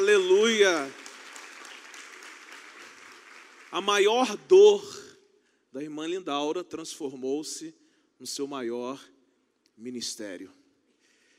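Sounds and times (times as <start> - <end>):
audience applause: 0.0 - 4.2
speech: 0.1 - 1.0, 3.7 - 5.0, 5.8 - 9.1, 9.8 - 10.6.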